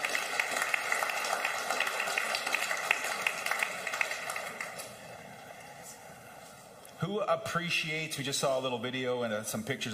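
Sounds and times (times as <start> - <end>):
audience applause: 0.0 - 5.7
speech: 7.0 - 9.9.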